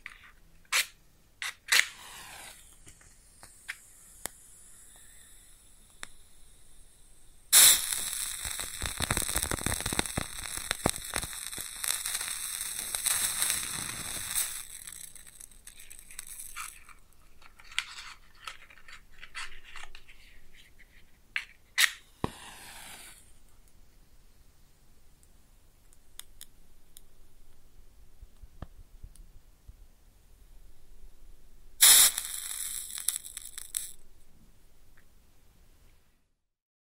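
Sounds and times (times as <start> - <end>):
match lighting: 0.0 - 6.9, 7.5 - 23.4, 31.8 - 34.0
fire crackles and sizzles: 1.7 - 20.5, 21.9 - 23.4, 25.9 - 27.2, 31.8 - 34.0.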